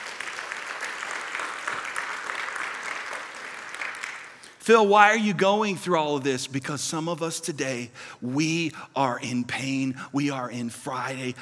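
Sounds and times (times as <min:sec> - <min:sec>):
audience applause: 0:00.0 - 0:04.5
speech: 0:04.7 - 0:11.4.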